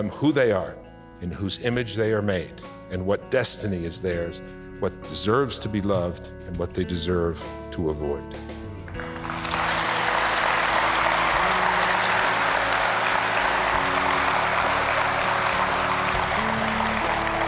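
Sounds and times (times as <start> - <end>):
speech: 0.0 - 8.6
audience applause: 9.0 - 17.4.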